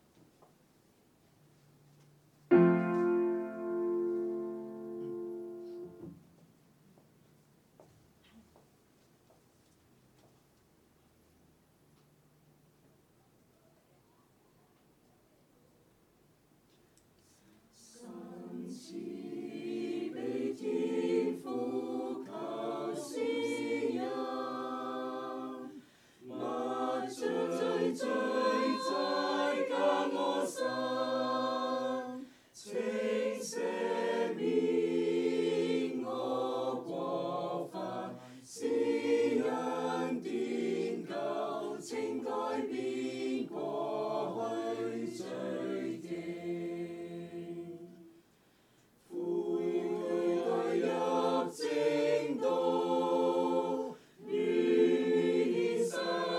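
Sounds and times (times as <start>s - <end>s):
choir singing: 2.5s - 6.2s, 17.8s - 48.2s, 49.0s - 56.3s.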